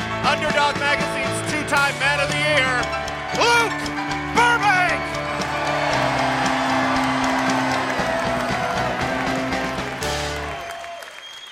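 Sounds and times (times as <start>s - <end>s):
speech: 0.3s - 4.1s
audience applause: 2.5s - 11.5s.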